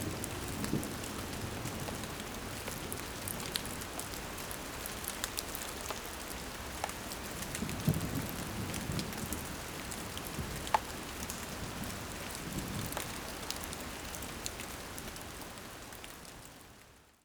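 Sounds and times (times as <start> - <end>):
rain in a forest: 0.0 - 17.2.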